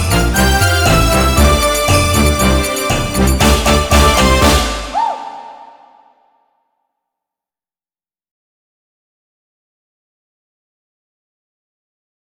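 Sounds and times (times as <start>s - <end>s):
melody: 0.0s - 5.0s.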